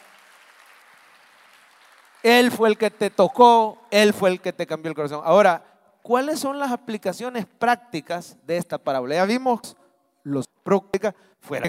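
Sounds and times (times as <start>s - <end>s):
audience applause: 0.0s - 2.3s
speech: 2.2s - 11.6s.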